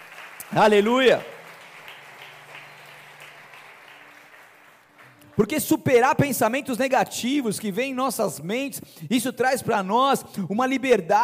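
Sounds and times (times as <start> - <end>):
audience applauding: 0.0 - 6.0
speech: 0.5 - 1.3, 5.4 - 11.2.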